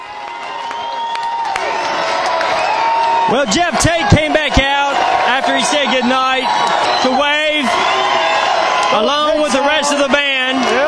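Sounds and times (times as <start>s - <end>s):
concert crowd clapping: 0.0s - 10.8s
large concert crowd cheering: 0.0s - 10.8s
whistles from concert crowd: 0.5s - 1.6s, 6.5s - 7.9s
speech: 3.3s - 4.6s.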